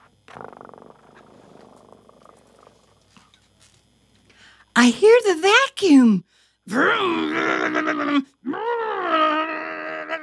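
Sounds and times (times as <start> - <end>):
cat purring: 0.0 - 3.3
speech: 4.8 - 8.6.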